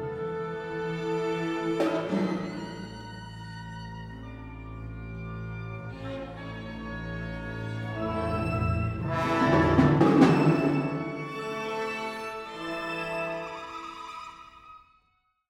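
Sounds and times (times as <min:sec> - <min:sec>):
quodlibet for six percussion: 0:00.0 - 0:04.4, 0:07.0 - 0:13.8.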